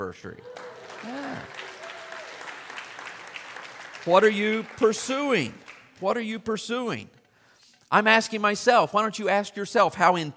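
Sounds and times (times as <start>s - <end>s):
speech: 0.0s - 1.7s, 4.0s - 7.2s, 7.9s - 10.3s
audience applause: 0.4s - 6.0s.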